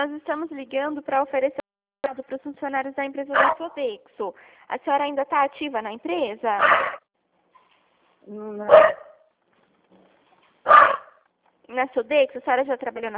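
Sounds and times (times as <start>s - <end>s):
speech: 0.0s - 7.0s, 8.2s - 9.0s, 11.7s - 13.1s
dog barking: 3.3s - 3.6s, 6.6s - 7.0s, 8.7s - 9.3s, 10.6s - 11.2s.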